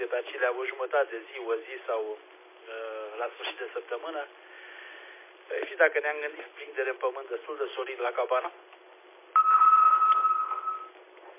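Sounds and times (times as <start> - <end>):
speech: 0.1 - 4.5, 5.5 - 8.8
telephone ringing: 9.4 - 11.0.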